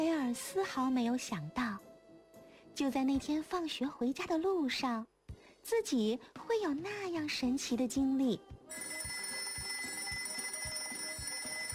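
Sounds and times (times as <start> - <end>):
speech: 0.0 - 1.9, 2.8 - 9.1
alarm clock ringing: 8.7 - 11.7.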